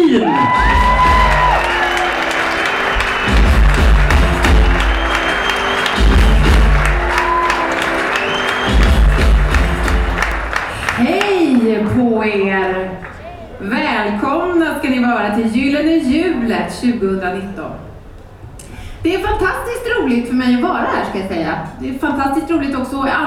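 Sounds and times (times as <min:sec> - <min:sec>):
audience applause: 0:00.2 - 0:11.9
speech: 0:13.6 - 0:17.8, 0:19.0 - 0:23.2.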